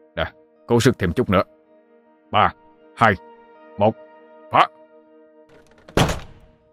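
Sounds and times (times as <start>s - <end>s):
speech: 0.2s - 1.6s, 2.3s - 4.8s
door rammed with a large wooden log: 5.5s - 6.6s.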